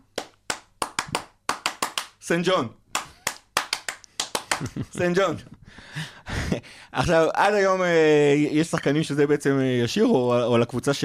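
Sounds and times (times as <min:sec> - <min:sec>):
rhythmic handclaps of a football chant: 0:00.0 - 0:02.2, 0:02.9 - 0:05.0
speech: 0:02.2 - 0:02.8, 0:04.6 - 0:11.0.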